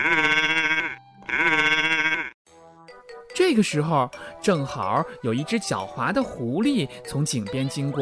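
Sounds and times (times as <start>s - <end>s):
young lamb bleating: 0.0s - 2.4s
speech: 3.5s - 8.0s.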